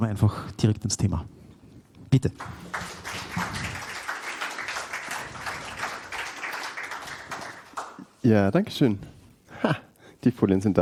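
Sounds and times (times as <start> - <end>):
speech: 0.0 - 1.4, 2.1 - 2.8, 8.2 - 10.8
audience applause: 2.4 - 8.1.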